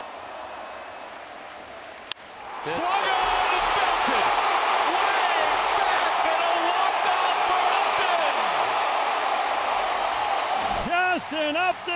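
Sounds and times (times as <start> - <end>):
baseball stadium crowd cheering: 0.0 - 11.9
speech: 2.6 - 3.2, 11.3 - 11.9.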